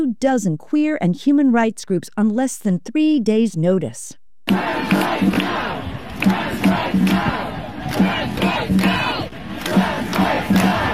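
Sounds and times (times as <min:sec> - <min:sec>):
speech: 0:00.0 - 0:07.3
protest crowd shouting and chanting at demonstration: 0:04.5 - 0:10.9.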